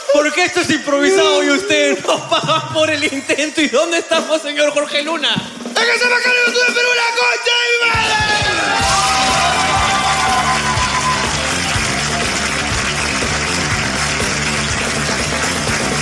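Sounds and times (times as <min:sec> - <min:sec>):
laughter: 0:00.0 - 0:04.6
speech: 0:00.1 - 0:06.8
large crowd cheering with shouts and whoops: 0:07.9 - 0:14.8
large crowd applauding: 0:08.0 - 0:16.0.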